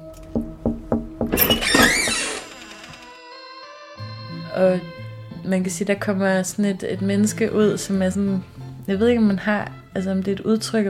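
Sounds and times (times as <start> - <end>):
knocking on a door: 0.3 - 2.2
speech: 4.6 - 10.8.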